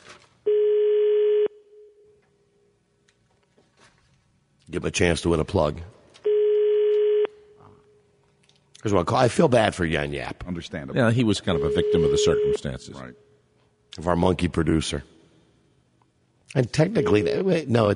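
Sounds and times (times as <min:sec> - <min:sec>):
foreign telephone ringing tone: 0:00.5 - 0:01.6, 0:06.3 - 0:07.3
speech: 0:04.7 - 0:06.0, 0:08.8 - 0:13.3, 0:14.0 - 0:15.2, 0:16.5 - 0:17.9.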